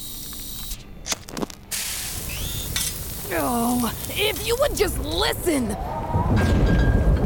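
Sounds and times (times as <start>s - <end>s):
sharp crackles and pops of frying hot dogs: 0.1s - 5.2s
hot dogs sizzling in a pan: 1.8s - 4.9s
speech: 3.3s - 6.8s.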